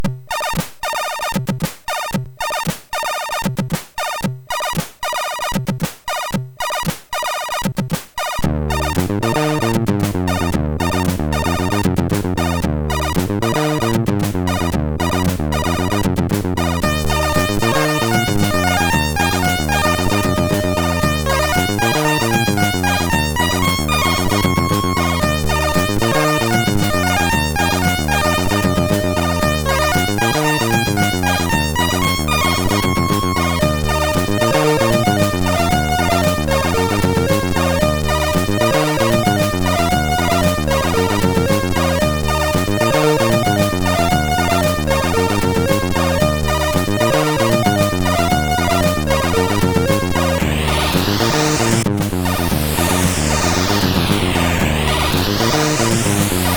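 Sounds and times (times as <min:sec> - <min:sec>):
MOS6581R4 chip music: 0:00.3 - 0:56.5.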